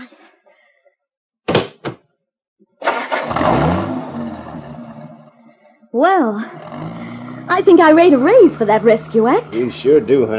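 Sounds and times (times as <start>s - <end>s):
car engine cranking, starting and idling: 2.8s - 5.3s, 6.8s - 10.3s
speech: 6.0s - 6.9s, 7.5s - 10.3s.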